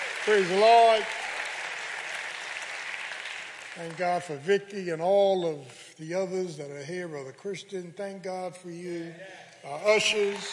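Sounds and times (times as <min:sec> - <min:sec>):
audience clapping: 0:00.0 - 0:04.9, 0:09.7 - 0:10.5
speech: 0:00.2 - 0:01.2, 0:03.8 - 0:10.5.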